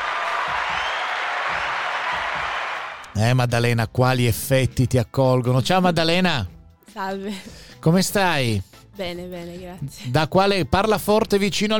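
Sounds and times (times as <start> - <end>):
applause welcoming a guest: 0.0 - 3.2
speech: 3.2 - 11.7.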